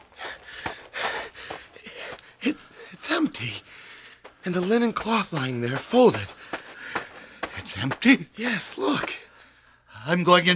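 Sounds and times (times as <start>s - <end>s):
man panting after running to the garden tomb: 0.0s - 3.0s, 3.6s - 4.4s, 6.3s - 7.6s
speech: 3.2s - 3.7s, 4.4s - 6.4s, 7.8s - 9.2s, 10.0s - 10.5s.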